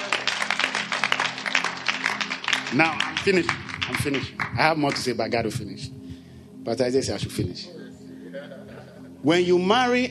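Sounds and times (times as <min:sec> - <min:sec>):
audience clapping hands: 0:00.0 - 0:05.2
speech: 0:02.7 - 0:06.0, 0:06.6 - 0:07.8, 0:09.2 - 0:10.0.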